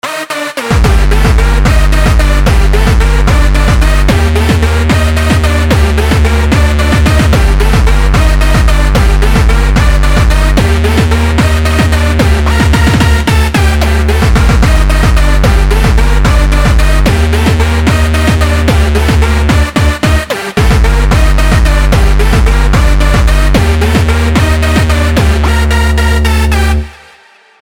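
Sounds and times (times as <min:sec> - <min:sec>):
hardstyle music: 0:00.0 - 0:27.5.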